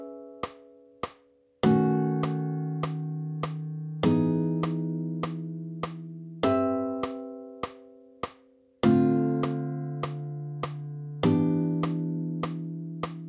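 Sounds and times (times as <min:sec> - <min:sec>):
four-voice jazz chords with root on the D string: 0:01.7 - 0:07.3, 0:08.9 - 0:13.2.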